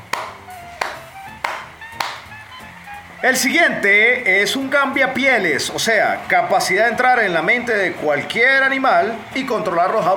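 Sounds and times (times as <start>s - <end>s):
slow hand claps: 0.0s - 2.4s
speech: 3.2s - 10.1s.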